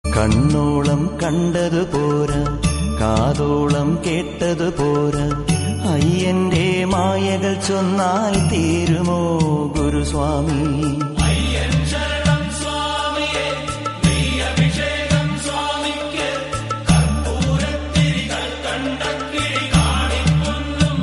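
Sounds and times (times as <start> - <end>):
Ayyappa devotional song ringtone: 0.1 - 21.0.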